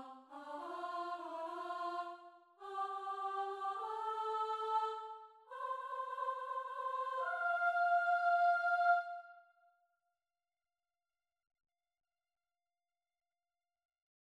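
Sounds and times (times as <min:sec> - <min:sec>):
soprano singing: 0:00.0 - 0:09.3.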